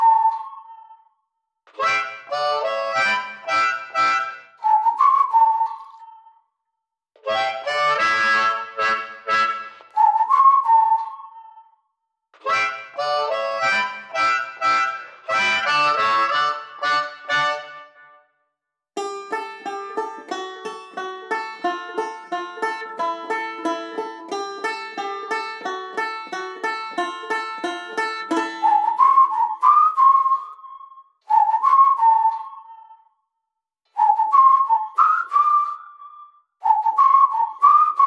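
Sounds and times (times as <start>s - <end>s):
whistle: 0.0s - 6.7s, 7.3s - 18.4s, 19.3s - 38.0s
harmonica: 1.7s - 4.6s, 7.2s - 10.3s, 12.4s - 18.0s, 19.0s - 29.3s
banjo playing blues: 7.2s - 10.4s, 12.4s - 17.8s, 19.0s - 29.6s.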